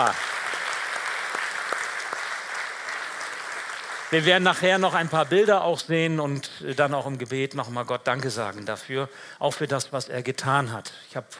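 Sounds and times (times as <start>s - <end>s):
speech: 0.0s - 0.3s, 4.1s - 11.3s
audience applause: 0.0s - 5.4s.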